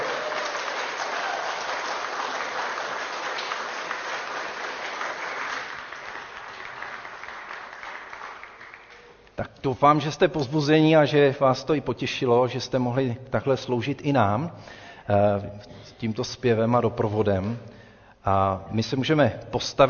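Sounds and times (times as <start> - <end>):
audience applause for musicians: 0.0 - 9.2
speech: 9.4 - 19.8.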